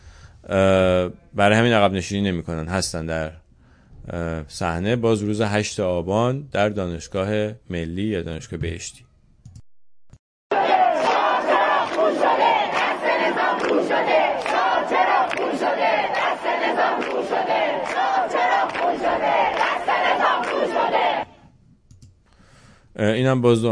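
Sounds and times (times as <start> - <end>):
speech: 0.5 - 3.4, 4.0 - 9.1, 23.0 - 23.7
protest crowd chanting slogans at university: 10.5 - 21.3.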